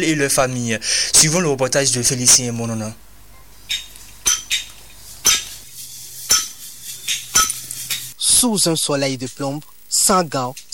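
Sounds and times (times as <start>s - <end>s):
speech: 0.0s - 3.0s, 8.4s - 10.6s
hammer blows breaking stone by hand: 3.4s - 8.1s.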